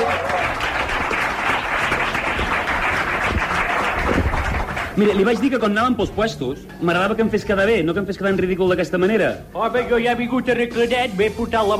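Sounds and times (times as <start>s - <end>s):
audience applause: 0.0s - 5.5s
speech: 5.0s - 11.7s.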